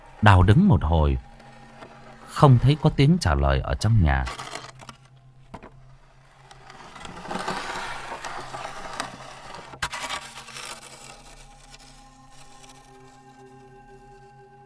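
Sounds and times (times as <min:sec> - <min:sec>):
speech: 0:00.2 - 0:01.3, 0:02.3 - 0:04.4
scratching behind a door: 0:05.8 - 0:12.9.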